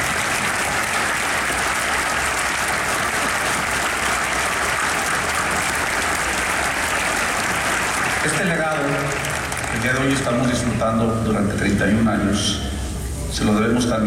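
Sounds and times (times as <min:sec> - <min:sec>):
loud audience applause: 0:00.0 - 0:11.0
speech: 0:09.9 - 0:12.7, 0:13.3 - 0:14.0.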